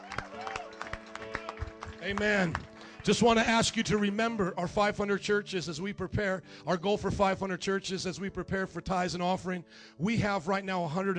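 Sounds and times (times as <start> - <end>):
audience clapping: 0.0 - 4.4
speech: 2.0 - 11.1.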